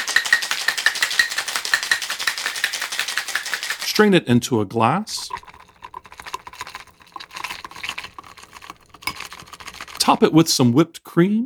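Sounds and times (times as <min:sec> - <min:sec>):
ice rattling in a cocktail shaker: 0:00.0 - 0:04.1, 0:05.1 - 0:10.5
speech: 0:04.0 - 0:05.4, 0:10.1 - 0:11.4.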